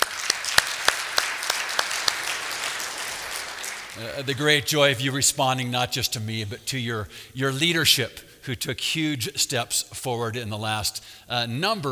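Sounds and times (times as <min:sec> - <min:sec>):
audience applauding: 0:00.0 - 0:04.6
speech: 0:04.0 - 0:11.8.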